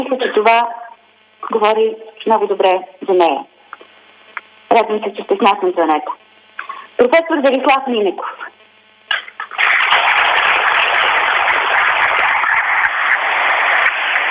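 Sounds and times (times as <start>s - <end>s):
speech: 0.0s - 0.8s, 1.4s - 3.5s, 4.7s - 6.2s, 7.0s - 8.6s
audience applause: 9.6s - 14.2s.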